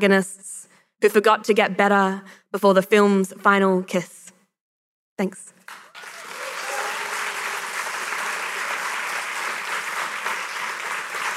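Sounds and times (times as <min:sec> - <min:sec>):
speech: 0:00.0 - 0:04.2, 0:05.2 - 0:05.5
audience clapping after a poem reading: 0:05.7 - 0:11.3.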